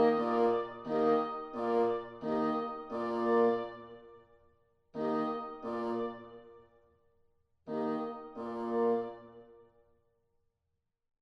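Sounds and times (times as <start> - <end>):
wind instruments playing an andante: 0.0 - 4.0, 5.0 - 6.4, 7.7 - 9.3.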